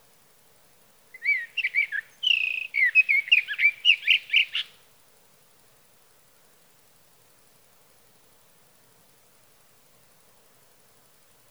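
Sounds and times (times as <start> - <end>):
sage thrasher song: 1.2 - 4.7.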